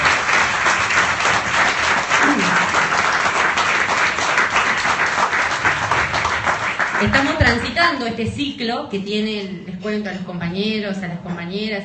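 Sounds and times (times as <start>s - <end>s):
audience applause: 0.0s - 7.8s
speech: 7.0s - 11.8s.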